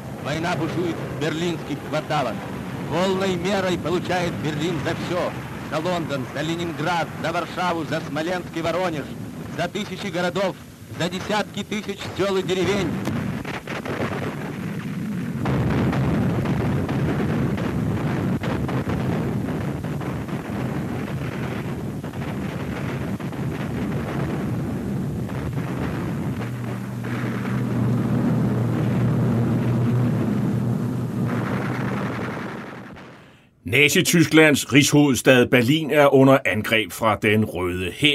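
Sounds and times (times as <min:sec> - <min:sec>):
speech: 0:00.2 - 0:13.1, 0:33.8 - 0:38.1
artillery cannon fire in archival Soviet propaganda film: 0:12.9 - 0:30.5, 0:31.1 - 0:33.4.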